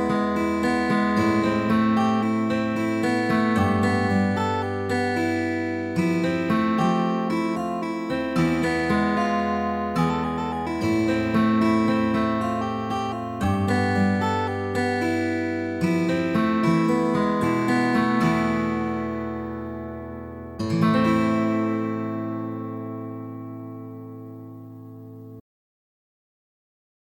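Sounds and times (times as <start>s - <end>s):
slow Spanish-style fingerstyle guitar at 75 bpm: 0.0s - 25.4s.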